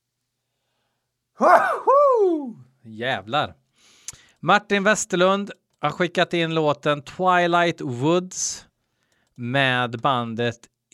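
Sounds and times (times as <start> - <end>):
person sneezing: 1.4 - 2.4
speech: 1.4 - 3.6, 4.4 - 8.7, 9.4 - 10.9.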